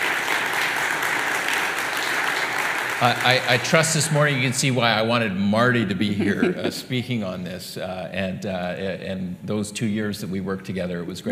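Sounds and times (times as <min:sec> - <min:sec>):
audience applause: 0:00.0 - 0:04.8
speech: 0:03.0 - 0:11.2
laughter: 0:05.9 - 0:07.4.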